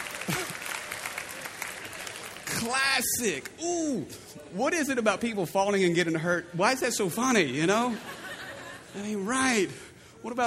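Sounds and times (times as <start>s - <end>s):
audience clapping hands: 0.0s - 3.6s
laughter: 0.1s - 0.9s, 7.6s - 9.6s
speech: 2.6s - 8.2s, 8.9s - 10.4s.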